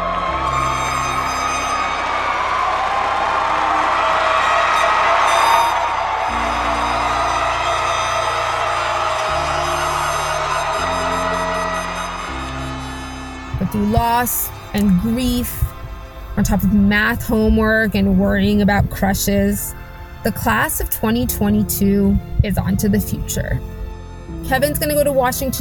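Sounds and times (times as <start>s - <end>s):
large graduation ceremony crowd applauding and cheering: 0.0s - 16.4s
droning horn-like tones: 0.0s - 18.8s
speech: 14.2s - 15.6s, 16.4s - 23.7s, 24.5s - 25.5s.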